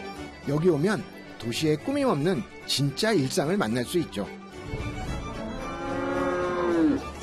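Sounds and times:
speech: 0.5 - 4.8
cow mooing at a market: 5.5 - 7.1.

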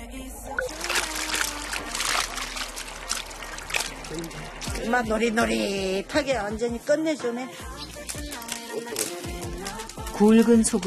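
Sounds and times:
clear mountain stream gurgling in the Wangpicheon valley: 0.4 - 6.1
speech: 4.1 - 7.7, 10.2 - 10.8.

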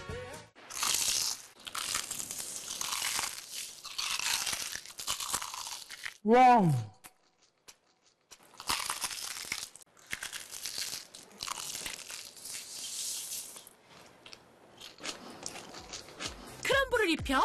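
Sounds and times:
crunchy bite into crispy fried chicken: 0.6 - 6.2, 7.2 - 13.7
speech: 6.2 - 7.0, 17.3 - 17.4.

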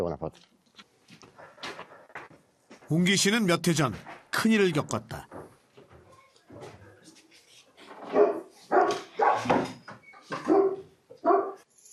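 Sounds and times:
speech: 0.0 - 0.6, 2.9 - 5.3
Komondor barking: 8.1 - 9.7, 10.3 - 11.7.

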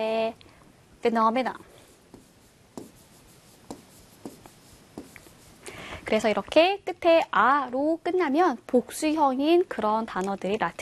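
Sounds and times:
speech: 0.0 - 1.7, 6.1 - 10.8
pen writing a word by hand: 1.8 - 5.6.

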